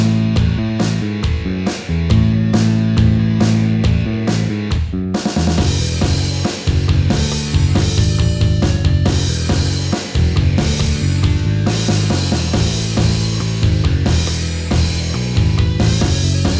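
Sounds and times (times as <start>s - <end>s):
bass drum line: 0.0s - 16.5s.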